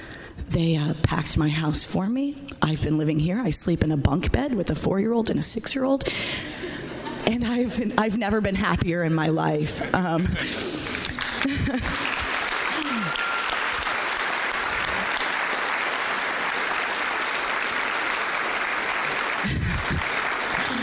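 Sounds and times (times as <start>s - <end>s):
speech: 0.5s - 6.6s, 7.2s - 10.8s, 11.4s - 12.1s
laughter: 9.8s - 13.4s, 19.0s - 20.8s
audience applause: 11.0s - 20.8s.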